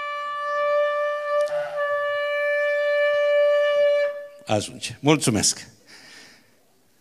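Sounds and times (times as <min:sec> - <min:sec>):
long trumpet blast sounding an alarm: 0:00.0 - 0:04.5
speech: 0:04.5 - 0:05.8.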